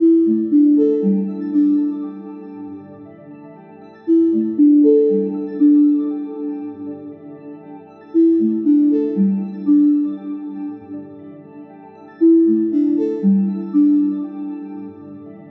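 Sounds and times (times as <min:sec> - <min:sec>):
soft ringtone melody: 0:00.0 - 0:15.4.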